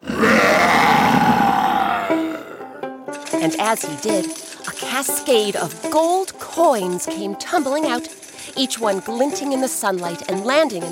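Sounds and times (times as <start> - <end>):
lion roaring: 0.0 - 2.8
speech: 3.6 - 10.8.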